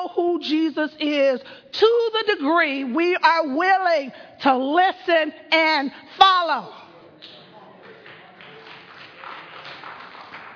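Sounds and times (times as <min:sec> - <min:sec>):
speech: 0:00.4 - 0:06.8
single audience member clapping: 0:07.2 - 0:10.5.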